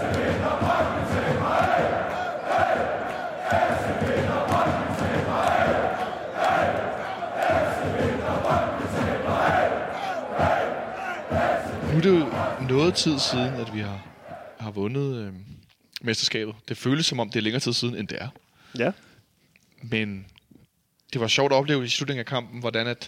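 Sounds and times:
crowd of fans singing a chant: 0.0 - 14.6
speech: 12.8 - 14.1, 14.7 - 19.1, 19.8 - 20.3, 21.1 - 23.0.

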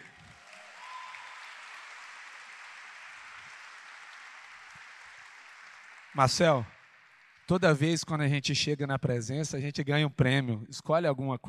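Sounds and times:
audience applause: 0.0 - 7.7
speech: 6.2 - 6.8, 7.5 - 11.4.

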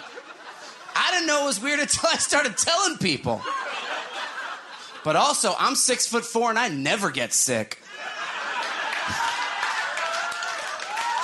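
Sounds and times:
laughter: 0.0 - 2.5, 3.2 - 5.8, 7.8 - 11.0
speech: 1.1 - 3.9, 5.0 - 7.8
audience clapping: 8.5 - 11.2.

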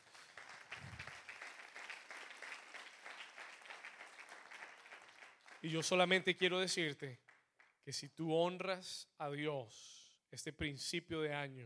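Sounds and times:
crowd applauding: 0.0 - 6.2
speech: 5.6 - 7.2, 7.9 - 11.6.

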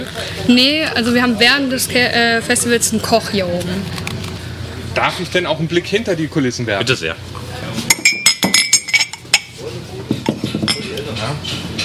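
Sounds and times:
speech: 0.0 - 4.1, 5.0 - 7.4
murmur of voices: 0.0 - 11.8
cups and dishes clinking as collected: 7.8 - 11.8.

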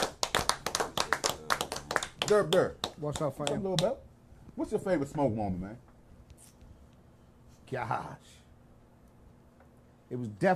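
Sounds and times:
small group of people clapping their hands: 0.0 - 4.0
speech: 2.3 - 5.9, 7.7 - 8.4, 10.1 - 10.5.

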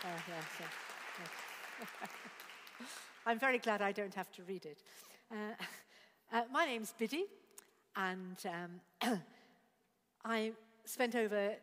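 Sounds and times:
round of applause: 0.0 - 3.3
speech: 0.0 - 7.4, 8.0 - 9.4, 10.2 - 11.6.

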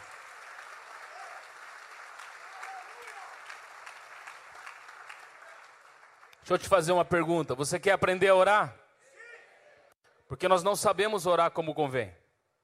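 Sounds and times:
audience applauding: 0.0 - 6.5
speech: 6.5 - 8.8, 10.3 - 12.2.

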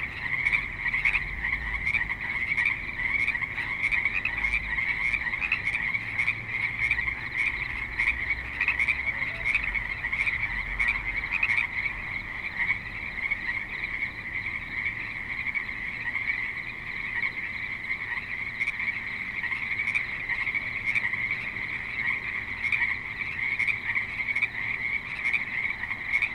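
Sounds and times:
frogs croaking in chorus: 0.0 - 26.3
low rumble from passing traffic: 0.0 - 26.3.

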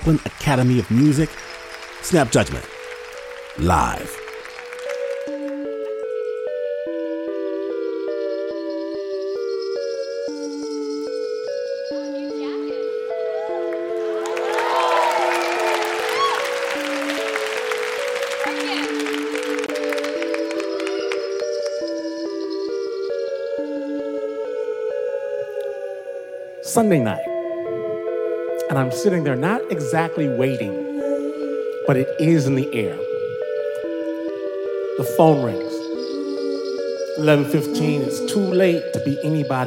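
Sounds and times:
speech: 0.0 - 2.7, 3.6 - 4.2, 26.8 - 27.3, 28.7 - 30.8, 31.9 - 33.1, 35.0 - 35.7, 37.2 - 39.6
live crowd cheering and applauding: 0.0 - 5.7, 13.5 - 21.7
steady bright musical theme: 0.0 - 39.6.

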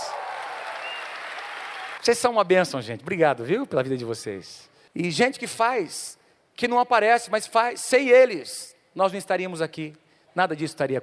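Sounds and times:
audience applause: 0.0 - 2.0
speech: 2.0 - 11.0.

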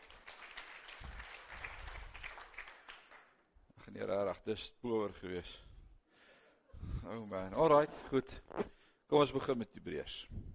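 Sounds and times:
crowd clapping: 0.0 - 3.4
speech: 3.9 - 5.7, 7.1 - 10.5.

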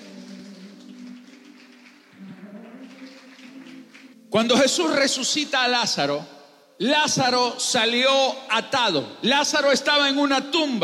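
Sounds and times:
audience applause: 0.0 - 4.3
speech: 4.3 - 10.8.

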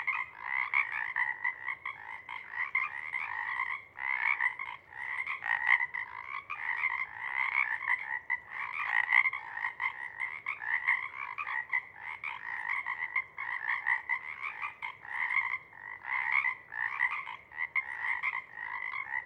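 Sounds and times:
Pacific chorus frogs croaking en masse: 0.0 - 19.2.

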